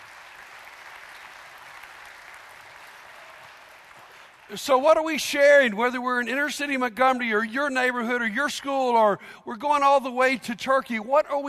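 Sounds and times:
audience applause: 0:00.0 - 0:04.5
speech: 0:04.5 - 0:11.4.

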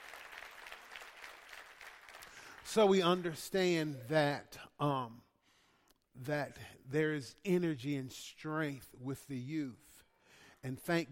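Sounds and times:
audience applause: 0:00.0 - 0:02.7
speech: 0:02.7 - 0:05.3, 0:06.2 - 0:09.9, 0:10.6 - 0:11.1.

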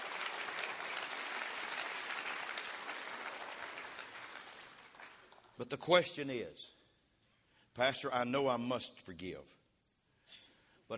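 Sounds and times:
audience clapping hands: 0:00.0 - 0:05.6
speech: 0:05.6 - 0:06.8, 0:07.8 - 0:09.6, 0:10.3 - 0:10.9.

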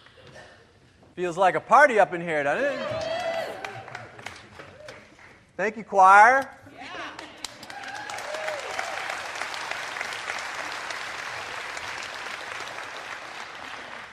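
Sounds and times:
speech: 0:01.2 - 0:03.1, 0:05.6 - 0:06.6
audience clapping on the beat: 0:02.9 - 0:05.5, 0:07.2 - 0:14.1.

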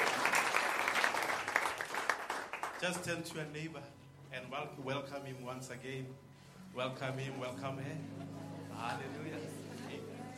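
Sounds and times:
congregation applauding in praise at a worship service: 0:00.0 - 0:03.4
speech: 0:02.8 - 0:09.6.

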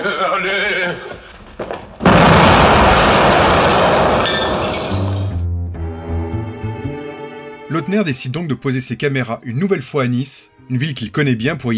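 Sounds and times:
laughter: 0:00.0 - 0:01.1
speech: 0:00.0 - 0:01.8, 0:07.8 - 0:11.7
crackling shattering debris: 0:00.7 - 0:05.4
explosion in a film excerpt: 0:00.8 - 0:05.4.

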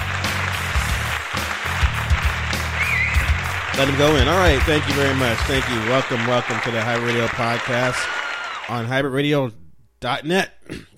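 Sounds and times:
band music playing: 0:00.0 - 0:08.0
audience applause at a live show: 0:00.0 - 0:08.9
speech: 0:03.8 - 0:10.9.

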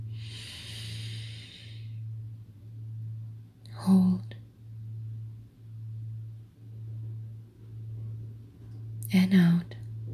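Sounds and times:
low steady hum: 0:00.0 - 0:10.1
slow deep belly breath inhalation during a guided breathing exercise: 0:00.1 - 0:02.1
speech: 0:09.1 - 0:09.8.

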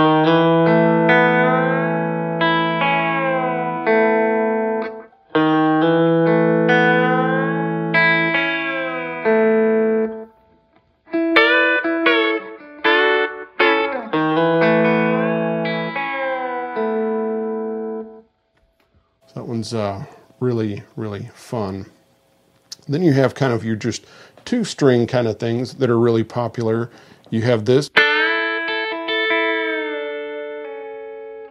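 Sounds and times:
electric guitar hammer-on lick played with pick and fingers: 0:00.0 - 0:20.5, 0:26.9 - 0:31.5
speech: 0:19.6 - 0:22.0, 0:22.9 - 0:27.9.

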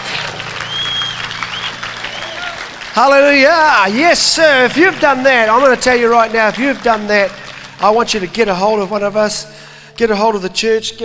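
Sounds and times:
audience clapping: 0:00.0 - 0:09.4
faint high whistle-like tone: 0:00.6 - 0:02.5
speech: 0:03.0 - 0:11.0.

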